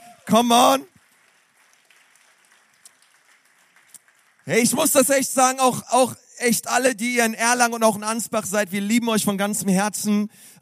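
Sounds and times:
whoops: 0.0 - 0.3
audience applause: 0.0 - 5.0
speech: 0.3 - 0.9, 4.5 - 10.6.

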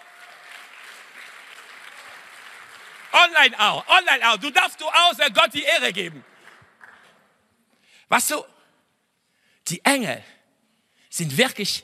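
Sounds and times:
audience applause: 0.0 - 7.2
speech: 3.1 - 6.3, 8.1 - 8.5, 9.7 - 10.4, 11.1 - 11.8.

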